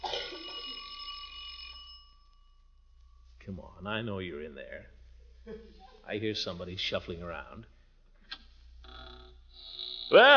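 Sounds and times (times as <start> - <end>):
doorbell ringing: 0.0 - 2.6
speech: 3.5 - 7.8, 10.1 - 10.3.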